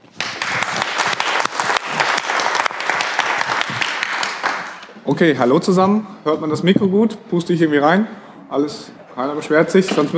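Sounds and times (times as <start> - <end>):
audience applause welcoming a talk on Linux kernel development: 0.1 - 4.8
speech: 5.1 - 10.1.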